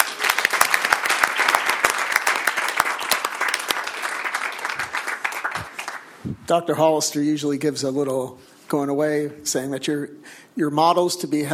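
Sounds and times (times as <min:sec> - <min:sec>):
audience applause: 0:00.0 - 0:06.2
speech: 0:06.5 - 0:11.5.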